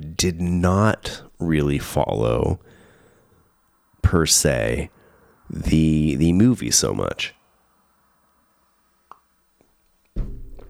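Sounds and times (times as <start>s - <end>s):
speech: 0.2s - 2.8s, 4.0s - 7.4s
cup hitting table: 10.2s - 10.6s.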